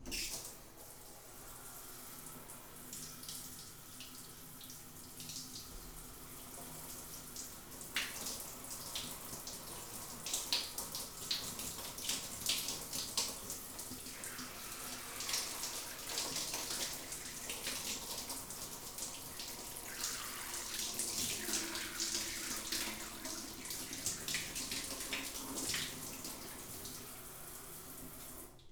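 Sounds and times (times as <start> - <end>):
tap water running while something is rinsed: 0.0 - 28.7.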